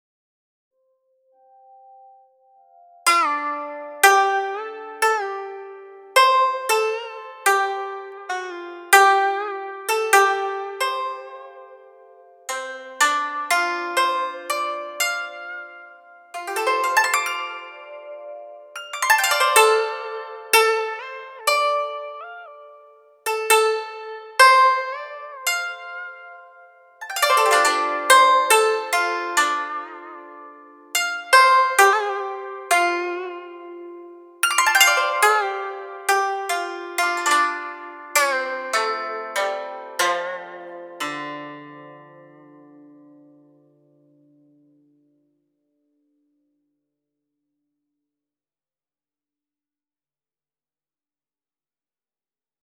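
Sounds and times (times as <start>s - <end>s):
dan tranh zither playing: 3.0s - 43.6s.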